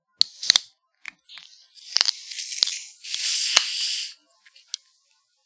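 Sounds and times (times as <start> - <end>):
soda bottles cracking open: 0.2 - 4.8.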